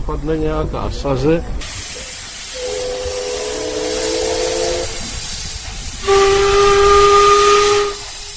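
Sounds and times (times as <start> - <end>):
speech: 0.1 - 1.7, 6.1 - 6.7
steady rush of hissing steam: 1.6 - 8.3
coal-fired paddle steamer whistle: 2.5 - 5.2, 6.0 - 8.3.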